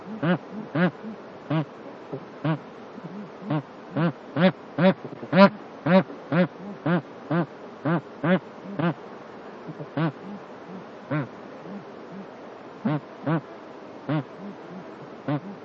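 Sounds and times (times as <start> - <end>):
bar-headed goose honking: 0.0 - 1.7, 2.4 - 9.0, 11.1 - 13.4, 14.1 - 15.6.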